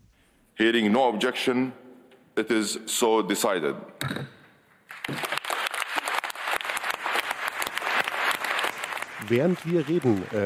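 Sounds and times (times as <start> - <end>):
speech: 0.6 - 1.8, 2.4 - 4.4, 9.3 - 10.4
large plenary audience applauding at conference: 4.9 - 10.4.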